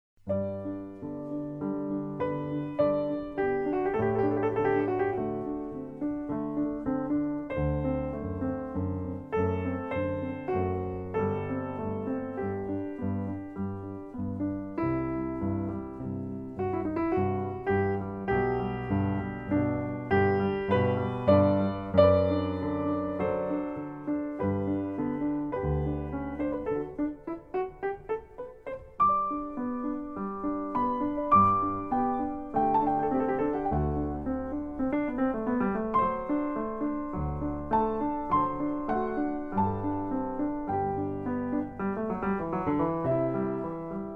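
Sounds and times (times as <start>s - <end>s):
piano four hands sonata in D: 0.2s - 44.1s.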